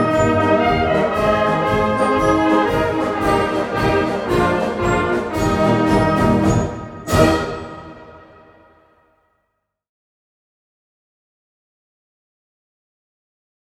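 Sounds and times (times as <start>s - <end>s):
freedom bells ringing: 0.0s - 8.7s.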